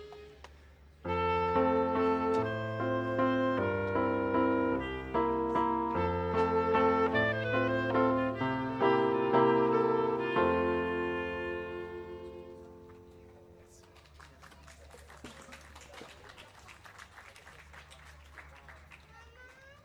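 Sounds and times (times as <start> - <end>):
instrumental music: 0.0 - 13.6.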